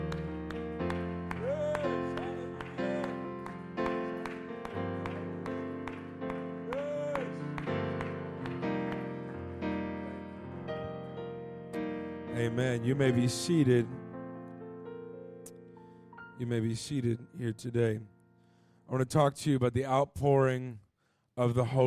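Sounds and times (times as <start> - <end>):
audience clapping hands: 0.0 - 10.9
audience shouting: 6.7 - 7.4
speech: 12.4 - 14.0, 16.4 - 18.1, 18.9 - 20.8, 21.4 - 21.8.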